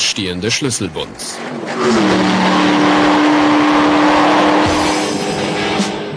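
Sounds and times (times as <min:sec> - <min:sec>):
tire noise: 0:00.0 - 0:06.1
speech: 0:00.2 - 0:03.0
tuned Weineck Cobra sports car accelerating hard: 0:01.4 - 0:06.1.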